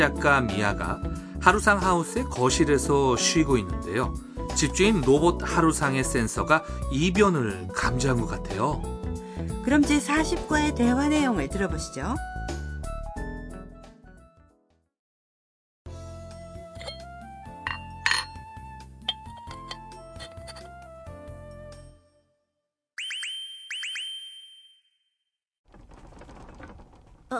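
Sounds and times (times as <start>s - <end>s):
speech: 0.0s - 8.9s, 9.6s - 12.5s
dishes rattling from earthquake shaking: 16.8s - 17.1s, 17.7s - 18.4s, 19.1s - 20.7s.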